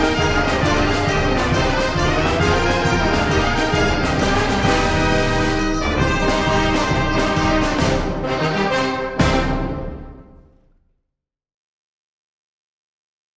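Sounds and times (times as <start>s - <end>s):
band playing a tarantella: 0.0s - 10.4s.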